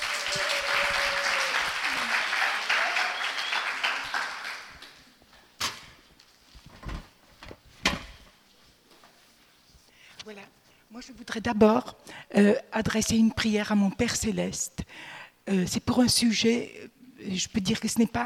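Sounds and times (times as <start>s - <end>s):
cheers: 0.0s - 4.7s
sustained audience applause: 0.0s - 4.9s
sharp knocks or thuds: 6.6s - 8.2s
speech: 11.0s - 18.2s.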